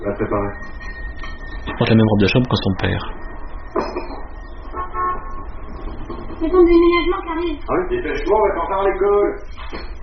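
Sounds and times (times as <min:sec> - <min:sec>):
speech: 0:00.2 - 0:00.9, 0:01.6 - 0:03.3, 0:06.4 - 0:09.9
horn toots: 0:04.7 - 0:05.6.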